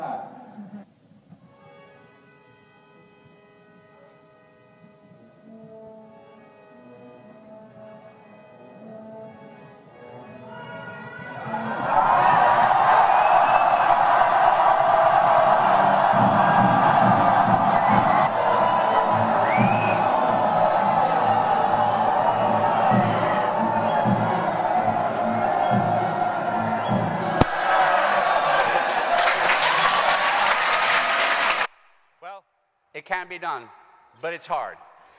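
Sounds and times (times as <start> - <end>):
audience screaming: 11.4 - 31.7
speech: 33.3 - 34.8.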